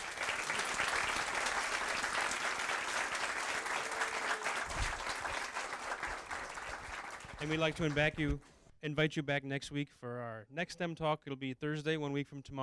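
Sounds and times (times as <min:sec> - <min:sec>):
round of applause: 0:00.0 - 0:08.4
speech: 0:07.4 - 0:12.6.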